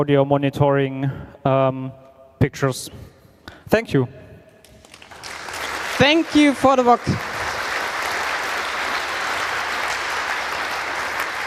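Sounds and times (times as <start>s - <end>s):
speech: 0.0s - 4.2s, 6.0s - 7.3s
audience applause: 4.8s - 11.4s.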